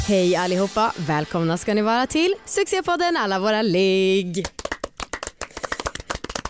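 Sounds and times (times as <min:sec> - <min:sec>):
speech: 0:00.1 - 0:04.6
applause: 0:04.2 - 0:06.4.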